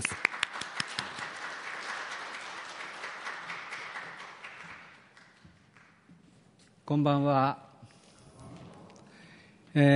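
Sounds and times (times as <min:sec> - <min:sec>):
audience applause: 0:00.0 - 0:05.9
speech: 0:06.9 - 0:07.6, 0:09.8 - 0:09.9.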